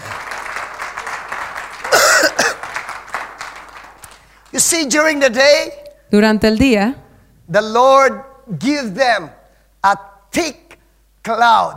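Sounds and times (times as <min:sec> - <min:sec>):
audience applauding: 0:00.0 - 0:04.9
loud cough: 0:01.8 - 0:02.8
speech: 0:04.6 - 0:10.6, 0:11.2 - 0:11.7.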